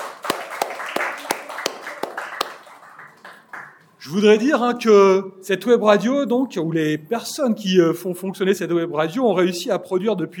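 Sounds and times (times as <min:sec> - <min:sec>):
audience applause: 0:00.0 - 0:03.8
speech: 0:04.0 - 0:10.3.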